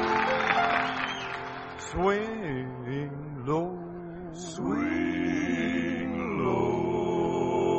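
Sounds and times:
audience applause for a gospel vocal group: 0.0s - 1.9s
speech: 1.9s - 7.7s.

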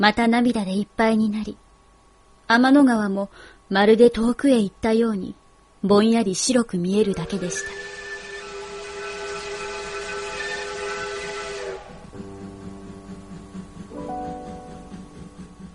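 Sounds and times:
speech: 0.0s - 1.6s, 2.5s - 7.9s
steam train whistle: 7.0s - 15.5s.

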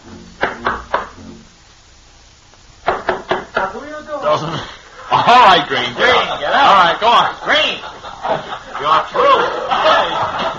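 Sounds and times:
knocking on a door: 2.8s - 3.7s
laughter: 4.4s - 10.5s
speech: 5.3s - 10.5s.

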